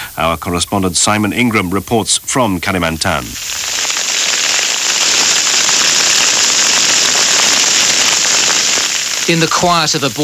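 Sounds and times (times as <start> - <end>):
speech: 0.2 - 3.8, 9.3 - 10.2
crackling flames of a forest fire in Borneo: 2.6 - 10.2.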